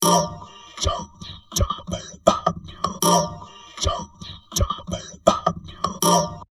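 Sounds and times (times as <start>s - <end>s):
heavily processed drum loops: 0.0s - 6.5s
person talking: 0.0s - 6.5s.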